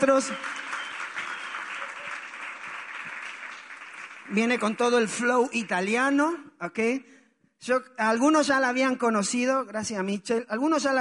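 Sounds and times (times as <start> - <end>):
speech: 0.0 - 0.7, 4.3 - 10.9
audience applause: 0.0 - 5.1.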